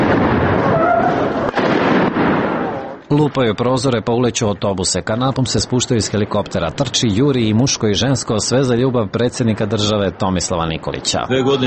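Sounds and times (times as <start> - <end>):
gunfire: 0.0 - 3.0
explosions: 0.0 - 3.6
speech: 3.1 - 11.6.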